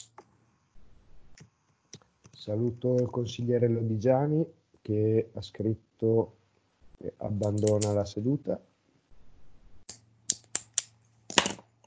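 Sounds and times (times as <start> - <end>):
faint steady low hum: 0.0 - 10.3
speech: 2.4 - 6.4, 7.0 - 8.7
computer keyboard typing: 7.4 - 8.0.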